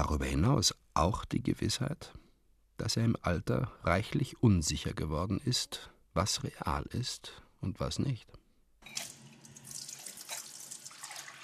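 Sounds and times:
speech: 0:00.0 - 0:02.2, 0:02.8 - 0:09.1
kitchen tap water running into a sink: 0:09.0 - 0:11.4.

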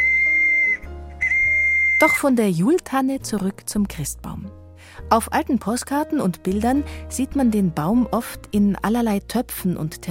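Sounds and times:
toy horse's built-in whistle: 0:00.0 - 0:02.2
speech: 0:02.0 - 0:10.1.

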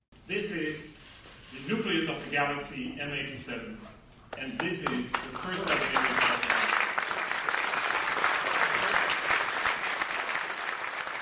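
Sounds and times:
speech: 0:00.3 - 0:06.6
audience applause: 0:04.8 - 0:11.2.

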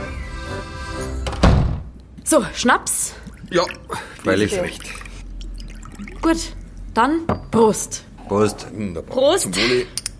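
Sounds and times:
door swinging shut: 0:01.2 - 0:01.9
speech: 0:02.3 - 0:05.0, 0:06.2 - 0:10.0.

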